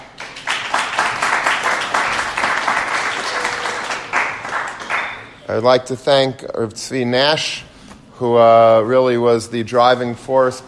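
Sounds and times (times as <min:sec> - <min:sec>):
audience applause: 0:00.0 - 0:05.3
speech: 0:05.5 - 0:10.6.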